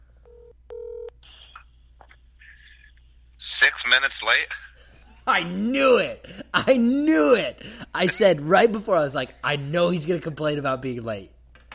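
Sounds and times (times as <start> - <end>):
telephone dialing tones: 0.3 - 1.1
speech: 3.5 - 4.6, 5.3 - 11.3.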